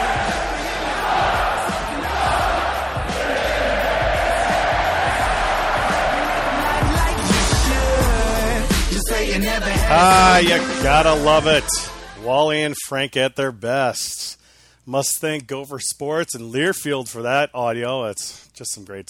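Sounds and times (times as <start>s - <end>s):
hockey arena crowd cheering: 0.0s - 8.2s
speech: 9.4s - 19.0s.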